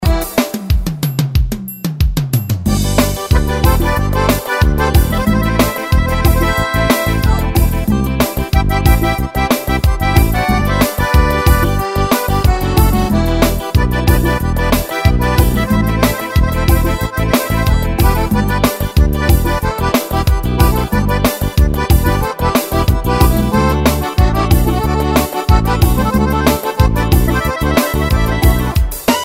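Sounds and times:
xote music: 0:00.0 - 0:29.2.

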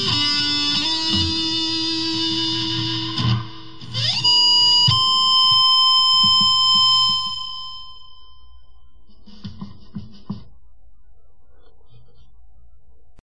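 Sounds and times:
guitar: 0:00.0 - 0:10.5.

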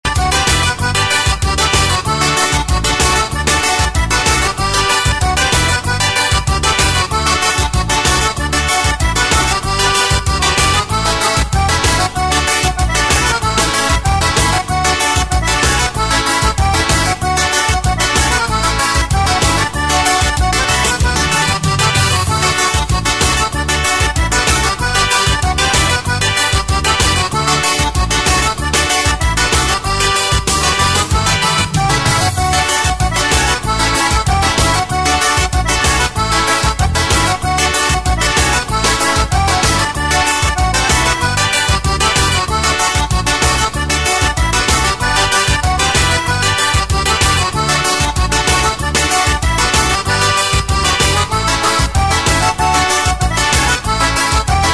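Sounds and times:
forro solo: 0:00.1 - 0:54.7.

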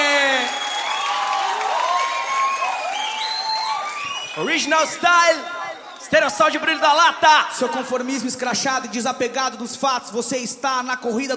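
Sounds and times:
audience applause: 0:00.0 - 0:06.3
speech: 0:04.4 - 0:11.3.

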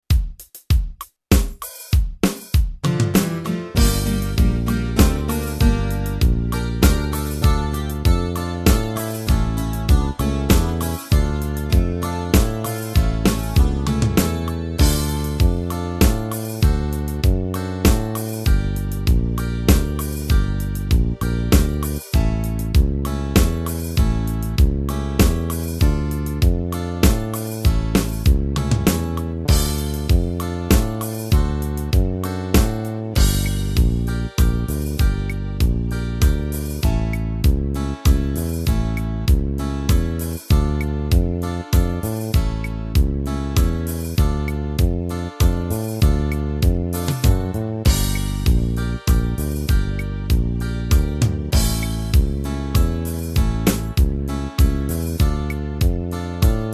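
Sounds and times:
Yamaha keyboard guarania rhythm pattern: 0:00.0 - 0:56.7.

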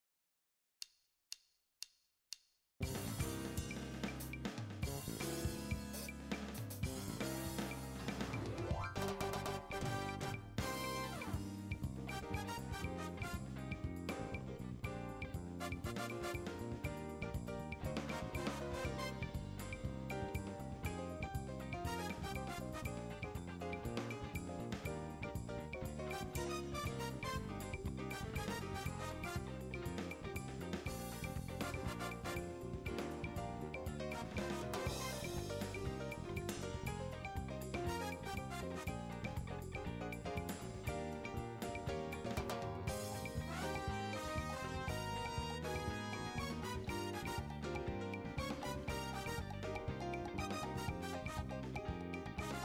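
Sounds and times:
salsa music: 0:02.8 - 0:52.6.

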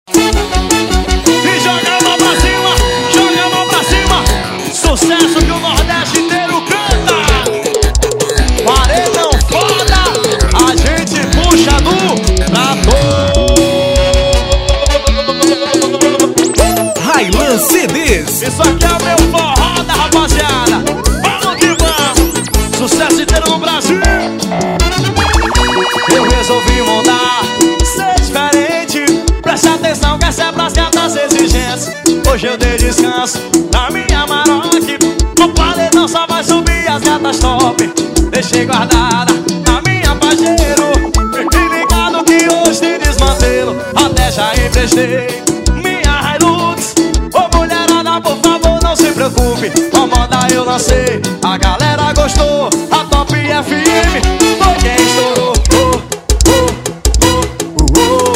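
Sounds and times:
forro paredao music: 0:00.1 - 0:58.3.

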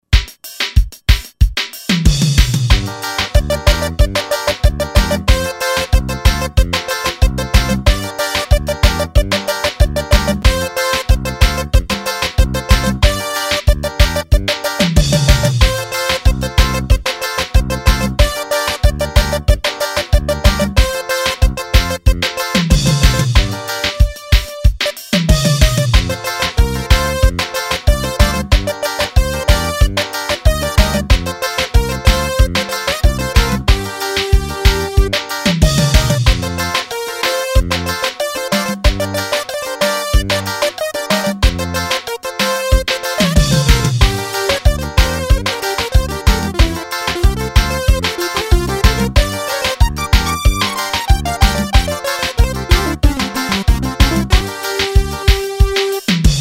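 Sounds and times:
pisadinha music: 0:00.2 - 0:56.3.

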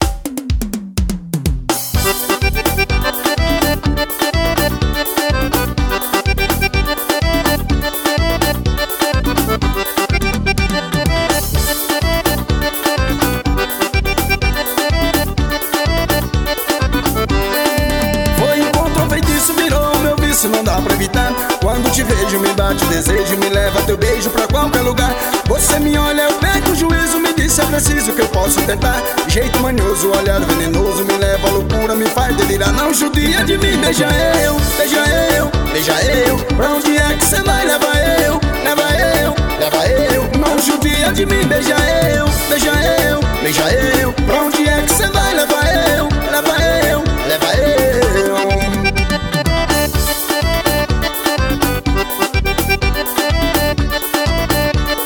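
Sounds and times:
forró music: 0:00.0 - 0:55.0.

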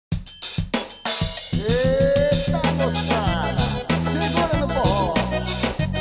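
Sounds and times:
forro music: 0:00.1 - 0:05.9.

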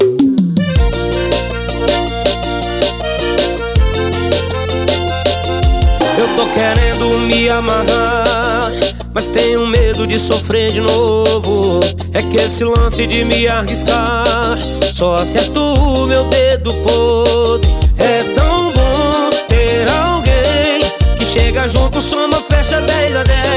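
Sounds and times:
romantic piseiro music: 0:00.2 - 0:23.5.

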